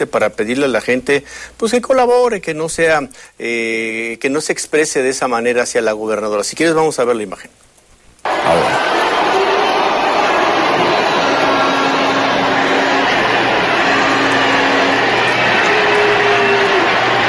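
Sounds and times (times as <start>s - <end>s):
speech: 0.0s - 7.7s, 8.4s - 9.0s
large crowd booing: 8.2s - 17.2s.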